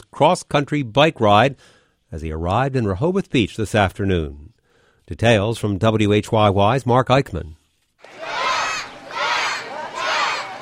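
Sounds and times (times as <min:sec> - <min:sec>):
speech: 0:00.1 - 0:08.4
kids from the Boys and Girls Club cheering along Rehoboth Avenue: 0:08.0 - 0:10.5.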